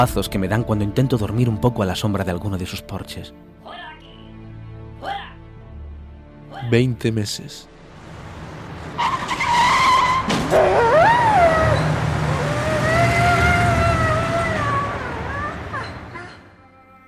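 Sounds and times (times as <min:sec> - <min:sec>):
speech: 0:00.0 - 0:03.9, 0:06.6 - 0:07.7
car engine rumbling: 0:07.9 - 0:16.5
car tires screeching in a skid: 0:07.9 - 0:16.6
dog yelping after being hit: 0:10.5 - 0:16.5.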